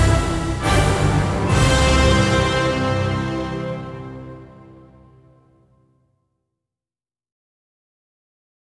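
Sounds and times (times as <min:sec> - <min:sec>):
instrumental Christmas carol without choir: 0:00.0 - 0:05.8.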